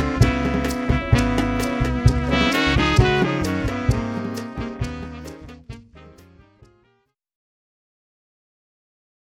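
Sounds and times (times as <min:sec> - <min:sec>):
swing combo playing: 0:00.0 - 0:06.9.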